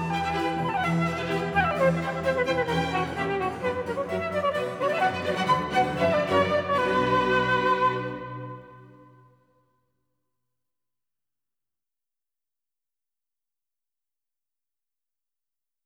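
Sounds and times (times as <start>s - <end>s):
orchestral suite piece: 0.0s - 9.4s.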